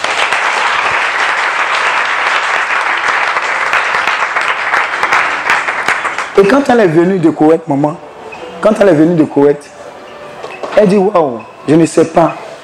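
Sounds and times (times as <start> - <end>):
congregation applauding in acclamation during a church service: 0.0 - 7.2
speech: 6.4 - 8.0, 8.6 - 9.8, 10.8 - 12.4.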